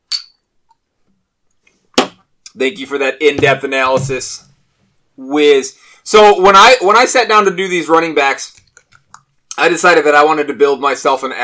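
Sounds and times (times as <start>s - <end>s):
glasses clinking in a toast: 0.0s - 0.5s
speech: 2.6s - 4.5s, 5.2s - 8.6s, 9.6s - 11.4s.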